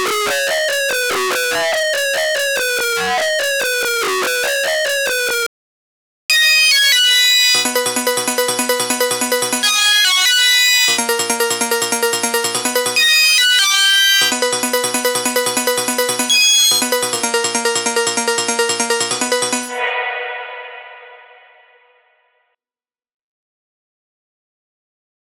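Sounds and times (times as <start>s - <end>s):
synthesizer music: 0.0s - 5.5s, 6.4s - 21.8s.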